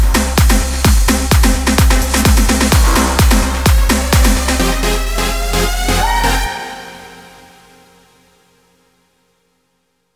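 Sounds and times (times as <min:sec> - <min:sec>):
128 BPM mix in C minor: 0:00.0 - 0:07.8.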